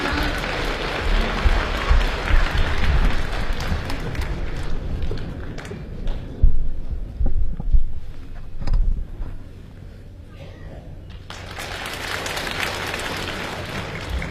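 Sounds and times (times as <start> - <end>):
audience clapping at a crosstalk comedy show: 0.0 - 6.4, 11.1 - 14.3
faint crowd noise: 0.0 - 14.3.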